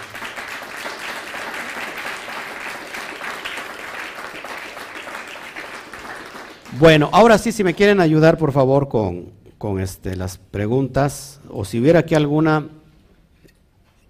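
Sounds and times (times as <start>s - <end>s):
audience applause: 0.0s - 8.0s
speech: 6.7s - 12.8s.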